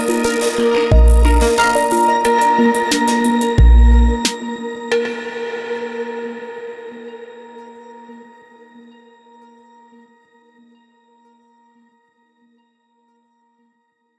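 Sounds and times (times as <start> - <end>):
glitch beats: 0.0 - 4.4
ambient electro music: 0.0 - 9.0.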